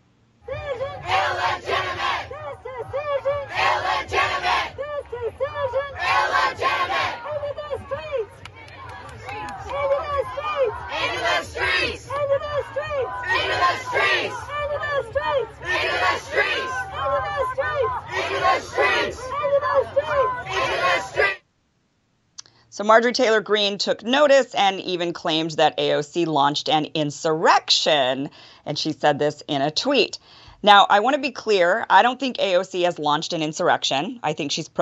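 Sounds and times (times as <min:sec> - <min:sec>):
low rumble of voices and hubbub: 0:00.4 - 0:21.4
protest crowd shouting and chanting outside court: 0:00.4 - 0:21.4
speech: 0:22.8 - 0:34.8.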